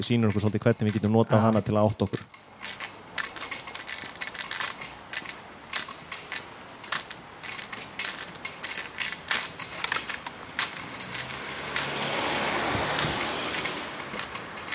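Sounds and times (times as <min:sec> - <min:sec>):
speech: 0:00.0 - 0:02.8
sharp clicks and crackles: 0:00.0 - 0:14.7
car speeding past on a city street: 0:10.9 - 0:14.3.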